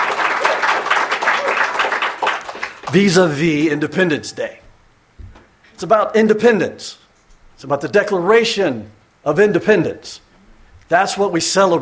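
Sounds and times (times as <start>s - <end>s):
audience clapping: 0.0s - 3.7s
speech: 2.9s - 4.6s, 5.8s - 7.0s, 7.6s - 10.2s, 10.9s - 11.8s.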